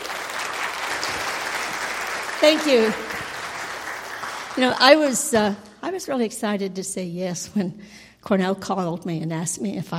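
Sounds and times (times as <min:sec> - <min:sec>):
audience applause: 0:00.0 - 0:04.9
speech: 0:02.4 - 0:03.1, 0:04.6 - 0:09.9.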